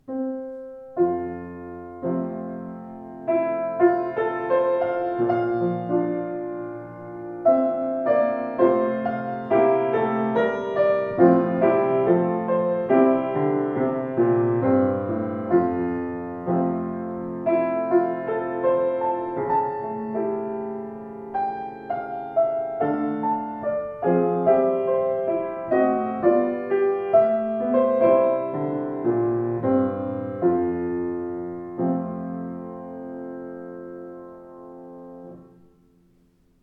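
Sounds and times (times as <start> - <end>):
piano: 0.0 - 36.6.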